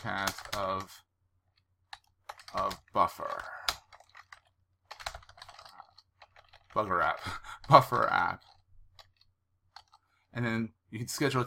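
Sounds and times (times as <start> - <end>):
typing on a computer keyboard into the Buffer app: 0.0 - 0.9, 1.9 - 10.0
speech: 0.0 - 1.1, 2.5 - 3.6, 6.8 - 8.5, 10.3 - 11.4.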